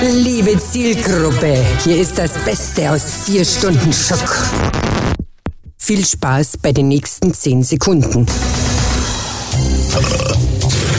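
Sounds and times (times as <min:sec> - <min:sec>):
speech: 0:00.0 - 0:05.2, 0:05.9 - 0:08.8, 0:09.6 - 0:10.4
loud burp: 0:09.9 - 0:10.9.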